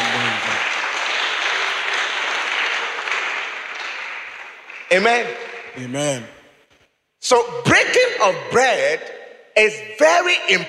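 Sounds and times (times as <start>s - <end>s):
hands clapping: 0.0s - 6.2s
speech: 4.9s - 6.4s, 7.2s - 10.6s.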